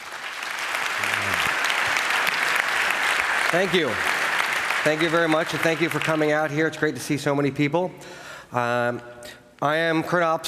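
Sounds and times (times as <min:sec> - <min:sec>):
audience applause: 0:00.0 - 0:06.5
speech: 0:03.5 - 0:04.2, 0:04.8 - 0:10.4.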